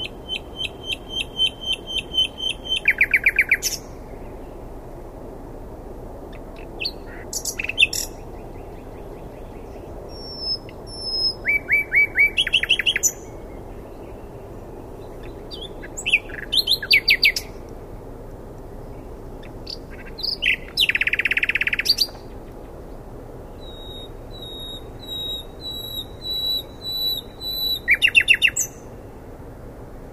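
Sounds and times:
common nightingale song: 0.0s - 4.7s, 6.3s - 17.7s, 18.8s - 29.3s.

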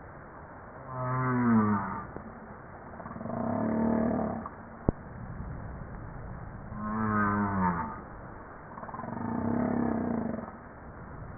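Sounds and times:
humpback whale harmonic moans: 0.8s - 2.1s, 3.0s - 4.5s, 6.7s - 8.1s, 8.7s - 10.5s.

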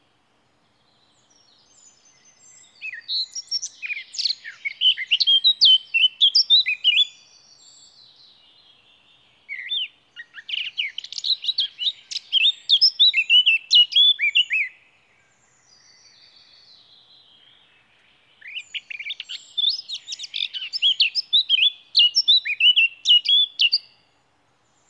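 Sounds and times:
Eurasian blackcap singing fluted whistles: 1.7s - 8.0s, 9.5s - 14.8s, 18.4s - 24.0s.

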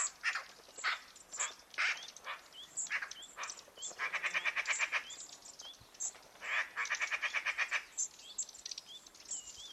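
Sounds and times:
Eurasian magpie Pica pica giving harsh rasping chattering calls: 0.0s - 5.2s, 6.4s - 8.1s.

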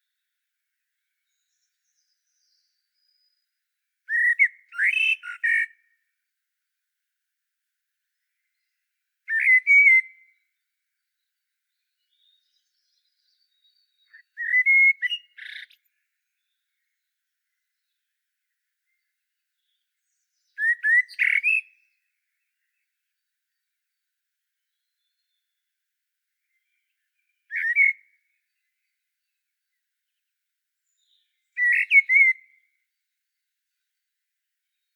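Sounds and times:
common blackbird singing mellow whistles: 1.2s - 3.4s, 4.1s - 5.8s, 9.3s - 10.4s, 11.3s - 17.0s, 18.9s - 22.8s, 26.4s - 29.3s, 30.8s - 32.6s.

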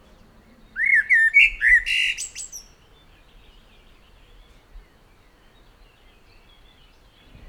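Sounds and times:
common blackbird song: 0.0s - 7.4s.

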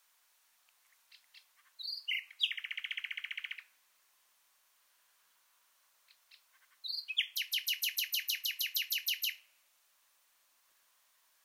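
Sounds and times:
common nightingale song: 0.8s - 3.8s, 6.0s - 9.5s.

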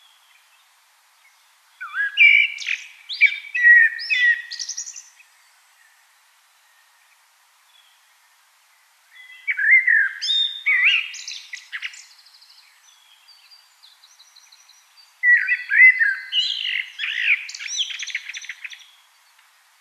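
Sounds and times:
common blackbird singing: 1.3s - 5.5s, 9.1s - 19.4s.

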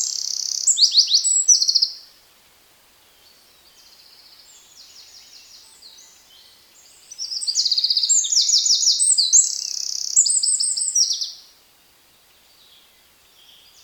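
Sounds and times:
Eurasian wren Troglodytes troglodytes singing rapid trills and buzzy rattles: 0.0s - 2.0s, 4.6s - 11.4s.

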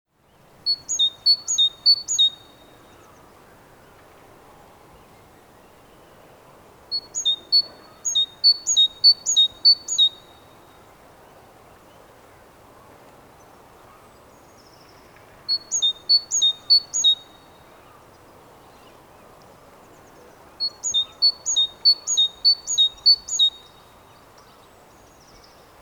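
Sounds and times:
great tit singing: 0.7s - 2.6s, 6.9s - 10.4s, 15.5s - 17.4s, 20.6s - 23.8s.

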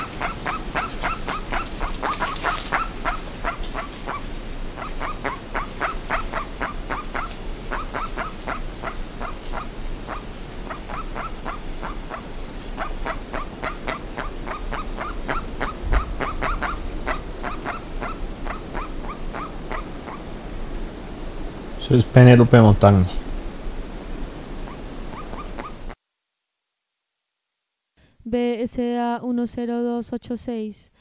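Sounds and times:
group of birds honking: 0.0s - 20.3s
low noise: 0.0s - 30.9s
speech: 21.9s - 23.2s, 28.8s - 30.9s.

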